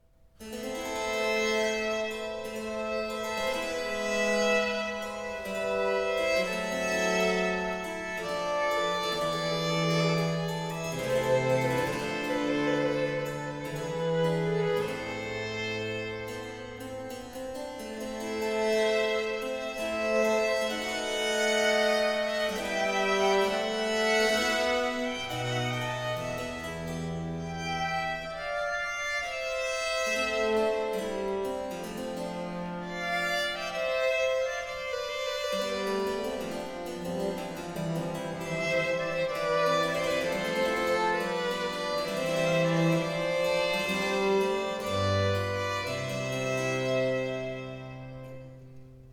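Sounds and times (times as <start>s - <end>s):
slow sonata movement for four parts in D major: 0.0s - 49.1s.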